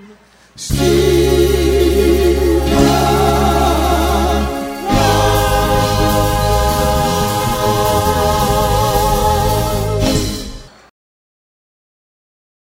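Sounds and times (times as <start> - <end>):
wedding band playing a song: 0.7 - 10.8.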